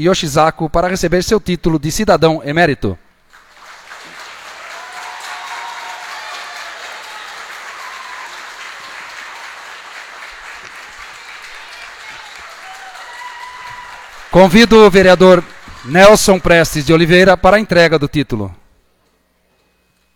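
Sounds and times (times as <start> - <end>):
speech: 0.0 - 3.0, 14.3 - 18.6
applause: 3.3 - 17.0.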